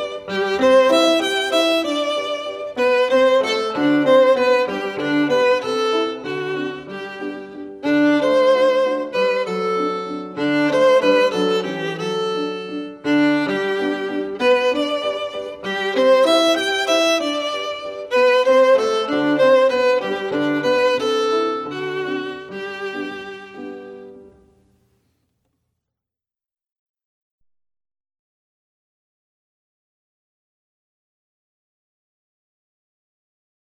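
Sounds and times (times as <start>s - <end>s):
violin piece: 0.0s - 24.6s.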